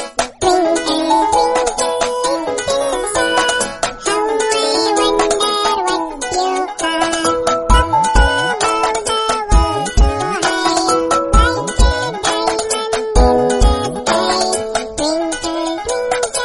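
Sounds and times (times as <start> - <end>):
nursery rhyme ringtone melody: 0.4 - 16.3.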